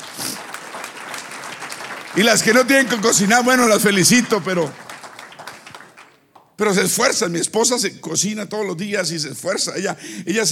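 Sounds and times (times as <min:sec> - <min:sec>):
audience applause: 0:00.0 - 0:06.4
speech: 0:02.2 - 0:04.8, 0:06.6 - 0:10.5.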